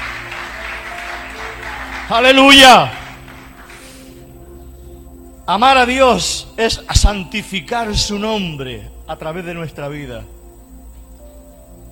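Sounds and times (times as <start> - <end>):
audience applause: 0.0 - 4.0
speech: 2.1 - 3.0, 5.5 - 10.4.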